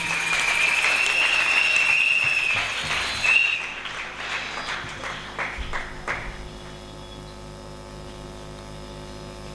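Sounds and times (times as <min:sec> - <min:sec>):
congregation applauding in church during a New Year worship service: 0:00.0 - 0:06.9.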